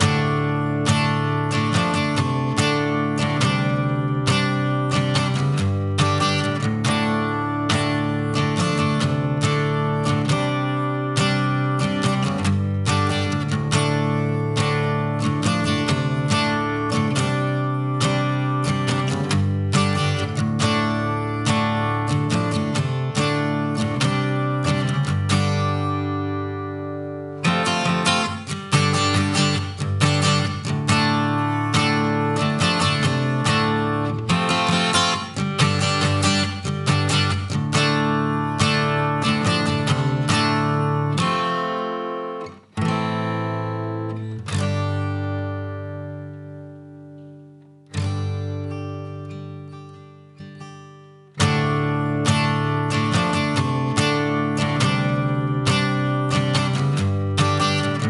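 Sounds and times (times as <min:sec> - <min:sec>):
guitar: 0:00.0 - 0:58.0.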